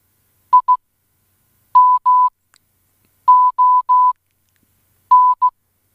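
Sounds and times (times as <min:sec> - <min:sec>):
name spelled in Morse code beeps: 0:01.8 - 0:02.3, 0:03.3 - 0:04.2, 0:05.1 - 0:05.5.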